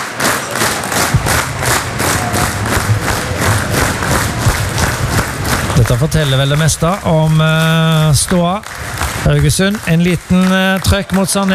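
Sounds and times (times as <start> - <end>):
football stadium crowd chanting: 0.0 - 6.5
football stadium crowd cheering: 0.0 - 11.5
dull thumps: 1.0 - 7.4
speech: 5.9 - 11.5.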